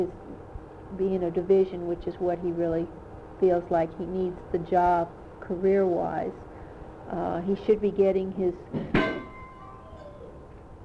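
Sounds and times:
speech: 0:00.0 - 0:00.2, 0:00.9 - 0:06.4, 0:07.1 - 0:09.0
crystal basket knocked over and breaking: 0:08.9 - 0:09.6
bell-like glassy ringing: 0:09.0 - 0:10.4.

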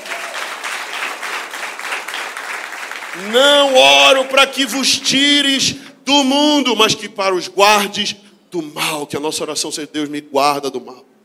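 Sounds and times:
church audience applauding loudly: 0:00.0 - 0:05.2
speech: 0:03.2 - 0:11.1.

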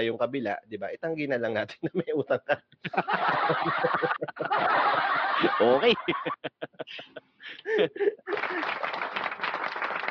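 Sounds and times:
speech: 0:00.0 - 0:10.0
people laughing: 0:01.8 - 0:09.1
hand claps: 0:08.3 - 0:10.0.

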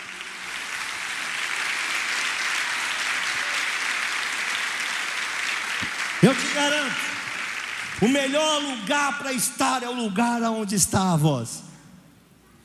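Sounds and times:
audience applause: 0:00.0 - 0:09.5
speech: 0:06.2 - 0:07.1, 0:08.0 - 0:11.7.

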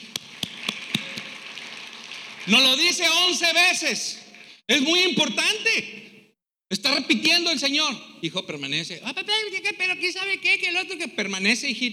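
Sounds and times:
applause: 0:00.0 - 0:04.6
speech: 0:02.5 - 0:06.0, 0:06.9 - 0:11.9.

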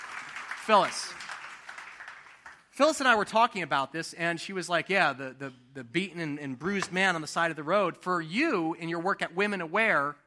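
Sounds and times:
audience applause welcoming a guest leader on stage at a church: 0:00.0 - 0:02.7
speech: 0:00.7 - 0:01.2, 0:02.8 - 0:10.2.

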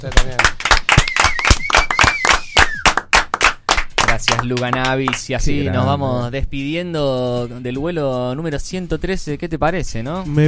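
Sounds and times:
speech: 0:00.0 - 0:00.6, 0:04.2 - 0:10.4
applause: 0:00.0 - 0:05.4.

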